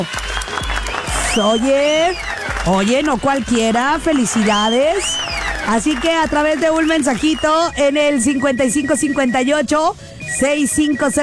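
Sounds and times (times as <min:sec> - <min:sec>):
speech: 0:00.0 - 0:00.3, 0:01.3 - 0:11.2
crowd applause: 0:00.0 - 0:07.8.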